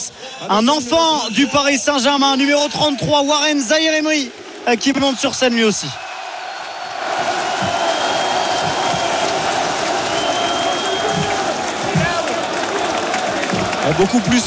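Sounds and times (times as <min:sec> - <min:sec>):
speech: 0:00.0 - 0:06.0, 0:13.9 - 0:14.4
crowd cheering and applauding: 0:03.4 - 0:14.4
whoops: 0:06.5 - 0:13.8.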